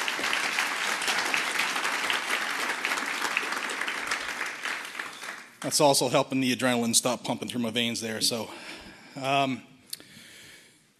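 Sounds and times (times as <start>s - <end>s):
audience applause: 0.0s - 5.9s
speech: 5.6s - 9.7s.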